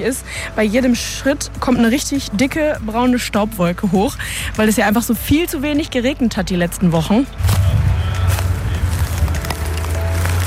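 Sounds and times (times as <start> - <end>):
speech: 0.0 - 7.8
fire engine motors idling: 0.0 - 10.4
clicks and crackles: 7.5 - 10.4.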